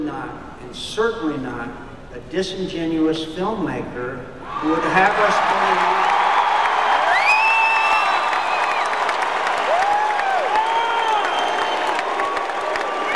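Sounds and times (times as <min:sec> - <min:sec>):
speech: 0:00.1 - 0:06.0
large crowd of delegates booing: 0:04.4 - 0:13.1
whistles and whoops: 0:06.0 - 0:13.1.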